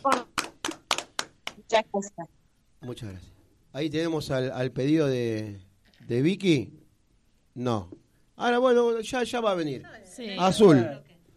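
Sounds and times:
applause: 0:00.0 - 0:01.7
speech: 0:01.8 - 0:06.8, 0:07.6 - 0:11.1.

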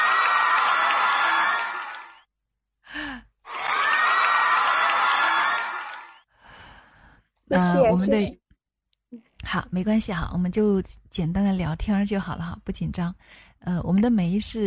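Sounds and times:
audience applause and cheering: 0:00.0 - 0:02.3, 0:03.4 - 0:06.3
speech: 0:07.5 - 0:08.4, 0:09.1 - 0:14.6.

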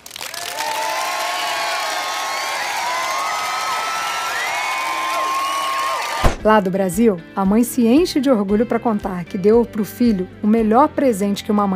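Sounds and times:
audience applause: 0:00.0 - 0:06.3
crowd cheering and whooping: 0:00.1 - 0:06.4
speech: 0:06.4 - 0:11.7.

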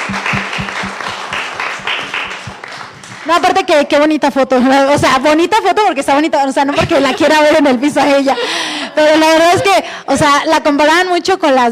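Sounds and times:
applause: 0:00.0 - 0:03.6
speech: 0:03.3 - 0:11.7.

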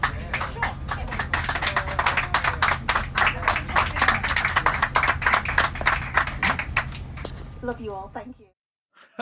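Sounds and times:
air crew applauding passengers on plane: 0:00.0 - 0:07.1
low constant aircraft cabin engine hum: 0:00.0 - 0:08.5
speech: 0:07.8 - 0:08.6.

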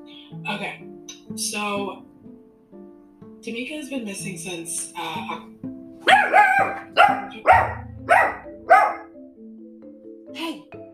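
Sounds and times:
speech: 0:00.3 - 0:02.1, 0:03.4 - 0:07.8
dog barking: 0:06.0 - 0:09.2.

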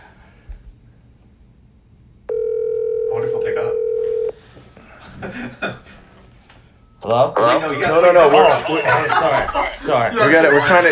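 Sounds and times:
phone ringback tone on speakerphone: 0:02.3 - 0:04.4
laughter: 0:04.9 - 0:06.1, 0:08.0 - 0:10.9
speech: 0:07.1 - 0:10.9.

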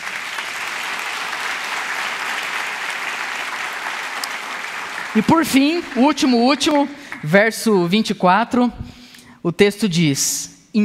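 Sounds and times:
audience applause: 0:00.0 - 0:07.3
speech: 0:05.2 - 0:10.8.

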